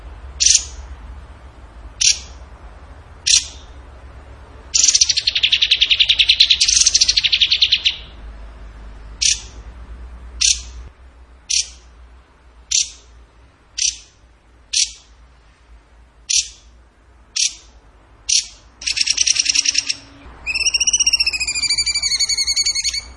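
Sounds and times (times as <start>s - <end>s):
bird trilling and chipping: 0.4s - 0.8s, 2.0s - 2.4s, 3.2s - 3.8s, 4.8s - 8.2s, 9.2s - 9.6s, 10.4s - 10.8s, 11.5s - 11.9s, 12.7s - 13.1s, 13.8s - 15.1s, 16.3s - 16.7s, 17.4s - 23.1s.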